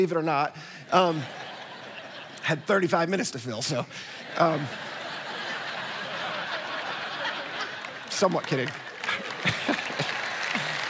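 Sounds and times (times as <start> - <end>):
speech: 0.0 - 1.4, 2.4 - 4.9, 8.2 - 8.8, 9.4 - 10.0
laughter: 0.6 - 10.8
audience clapping: 6.0 - 10.8.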